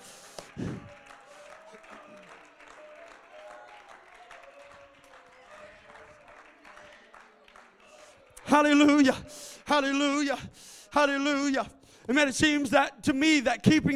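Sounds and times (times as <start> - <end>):
audience applauding: 0.0 - 10.3
speech: 8.6 - 13.9.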